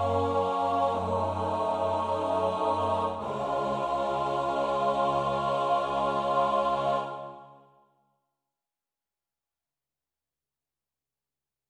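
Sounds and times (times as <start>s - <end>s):
SATB four-part choir singing: 0.0s - 7.7s.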